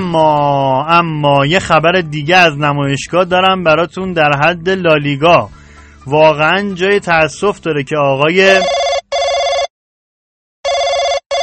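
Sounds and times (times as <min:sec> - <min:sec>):
speech: 0:00.1 - 0:08.8
telephone bell ringing: 0:08.6 - 0:09.7, 0:10.6 - 0:11.4.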